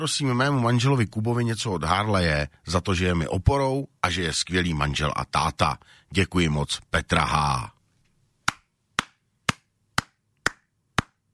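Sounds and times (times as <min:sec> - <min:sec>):
speech: 0:00.0 - 0:07.8
person clapping: 0:08.5 - 0:11.2.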